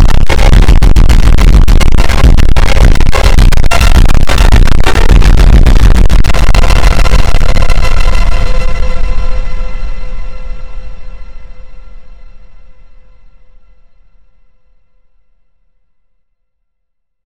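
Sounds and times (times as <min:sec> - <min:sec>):
slow funk superbass with reverb: 0:00.0 - 0:09.8.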